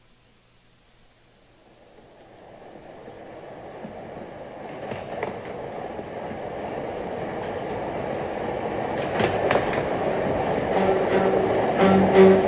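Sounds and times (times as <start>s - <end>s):
train rumbling along railway tracks: 1.6s - 12.4s
train wheels clacking: 3.6s - 12.4s.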